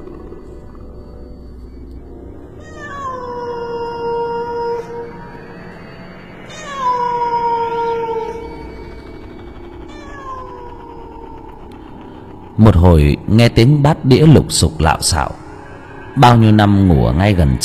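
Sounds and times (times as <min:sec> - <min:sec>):
cat yowling mournfully: 0:02.6 - 0:05.4, 0:06.5 - 0:08.7, 0:09.9 - 0:11.7
speech: 0:12.6 - 0:15.4, 0:16.2 - 0:17.6.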